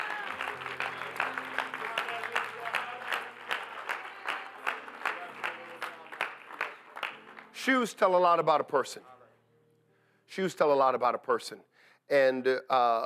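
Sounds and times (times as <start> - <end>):
audience clapping hands: 0.0 - 8.3
speech: 7.6 - 9.1, 10.4 - 13.0.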